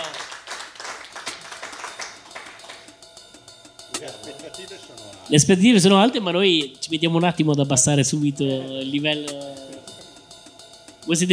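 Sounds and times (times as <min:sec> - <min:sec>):
crowd applause: 0:00.0 - 0:02.9
speech: 0:04.0 - 0:09.6, 0:11.1 - 0:11.3.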